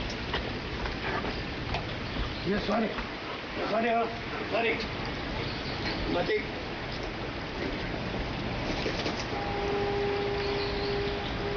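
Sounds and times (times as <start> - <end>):
rain on a quiet slope street: 0.0 - 11.5
speech: 2.5 - 5.0, 5.8 - 6.6
faint humming tone: 9.2 - 11.5.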